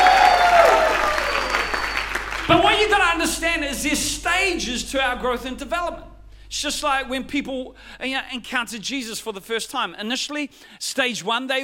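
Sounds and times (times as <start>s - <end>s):
people clapping: 0.0s - 2.7s
speech: 3.7s - 11.6s.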